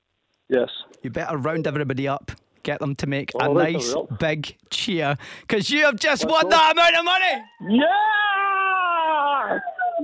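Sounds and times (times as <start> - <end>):
speech: 0.5 - 8.2, 9.5 - 10.0
child crying after a fright: 7.7 - 10.0.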